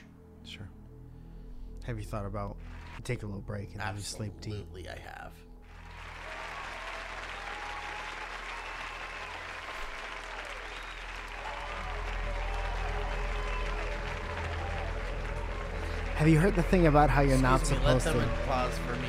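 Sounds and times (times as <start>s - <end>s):
speech: 0.5s - 0.8s, 1.8s - 5.5s, 16.2s - 19.0s
audience applause: 2.6s - 3.2s, 5.7s - 19.0s.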